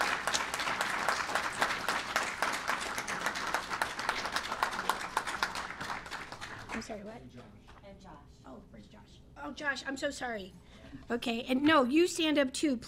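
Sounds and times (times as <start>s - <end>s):
audience applause: 0.0s - 6.9s
speech: 6.9s - 12.8s.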